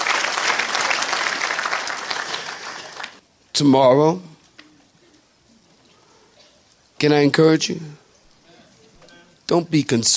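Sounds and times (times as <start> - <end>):
audience clapping hands: 0.0 - 3.2
speech: 3.6 - 4.3, 7.0 - 8.0, 9.5 - 10.1.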